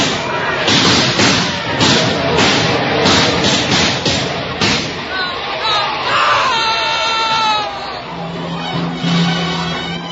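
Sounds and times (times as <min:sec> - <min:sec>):
volley of rifle fire: 0:00.0 - 0:05.4
people shouting and yelling: 0:00.0 - 0:10.0.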